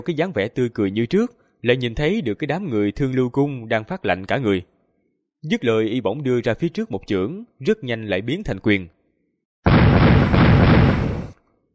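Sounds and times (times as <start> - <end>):
speech: 0.0 - 4.7, 5.4 - 9.0
roaring crackling burst of magical command tokens shattering: 9.7 - 11.4.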